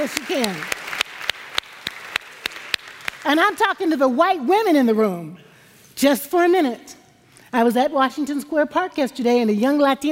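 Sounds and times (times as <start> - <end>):
speech: 0.0 - 0.8, 3.2 - 10.1
hand clapping: 0.0 - 3.3.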